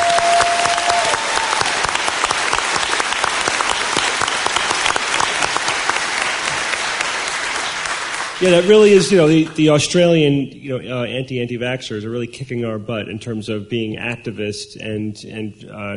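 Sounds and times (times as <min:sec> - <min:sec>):
audience applause: 0:00.0 - 0:09.7
speech: 0:08.4 - 0:15.9.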